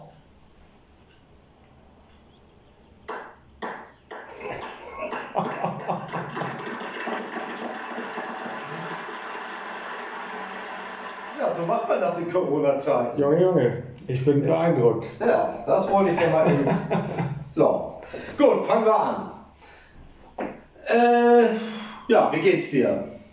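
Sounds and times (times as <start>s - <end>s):
laughter: 4.3s - 7.2s, 15.2s - 17.4s
applause played by voice assistant: 5.1s - 9.3s
speech: 11.9s - 19.3s, 20.9s - 23.1s.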